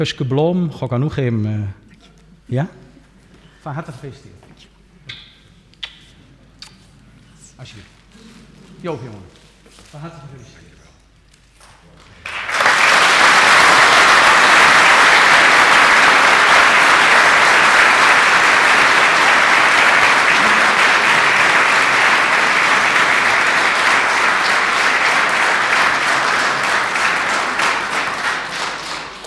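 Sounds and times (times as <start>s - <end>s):
speech: 0.0s - 1.8s, 2.5s - 2.8s, 3.6s - 4.4s, 7.6s - 7.9s, 8.8s - 10.6s
audience applause congratulating someone on an anniversary: 12.2s - 29.2s.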